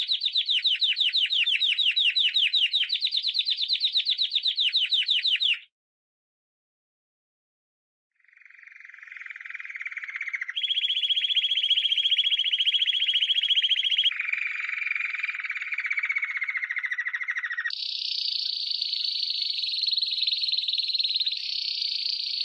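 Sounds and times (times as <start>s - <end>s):
Canary song: 0.0s - 5.7s, 8.2s - 22.4s.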